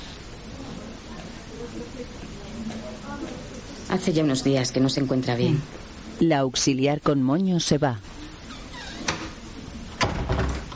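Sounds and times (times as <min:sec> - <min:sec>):
low steady hiss: 0:00.0 - 0:10.7
speech: 0:01.7 - 0:08.2
door closing: 0:08.5 - 0:10.7.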